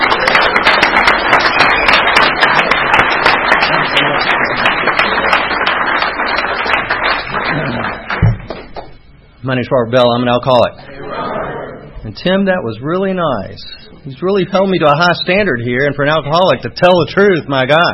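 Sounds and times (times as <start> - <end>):
audience applause: 0.0 - 8.9
thump: 8.2 - 8.5
speech: 9.5 - 11.0, 12.0 - 17.9.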